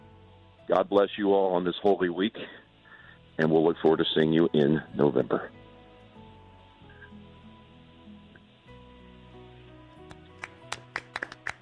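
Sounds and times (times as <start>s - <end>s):
speech: 0.7s - 2.6s, 3.4s - 5.6s
golf applause: 10.1s - 11.5s.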